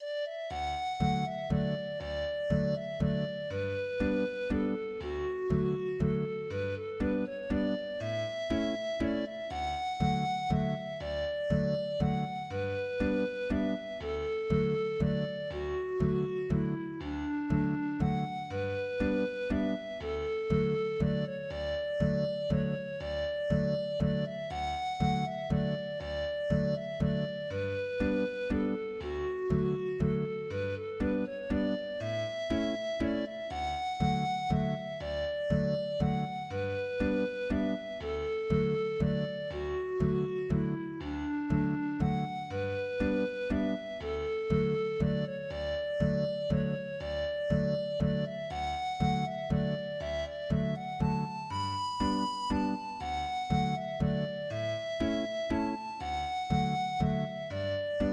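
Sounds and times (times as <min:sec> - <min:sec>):
instrumental tune in D: 0:00.0 - 0:58.1.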